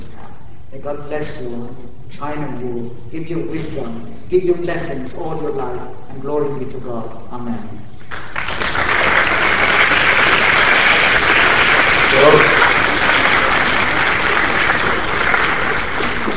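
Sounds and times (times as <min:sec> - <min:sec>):
speech: 0:00.7 - 0:08.2
round of applause: 0:08.0 - 0:16.3.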